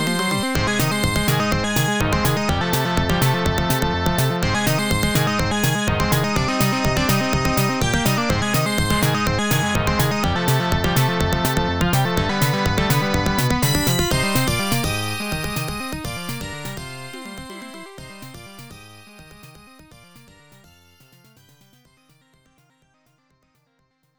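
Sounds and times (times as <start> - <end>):
stage background music: 0.0 - 17.3.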